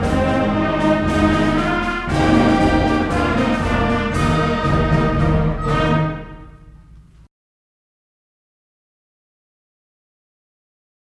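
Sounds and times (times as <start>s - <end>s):
concert march music: 0.0s - 7.3s.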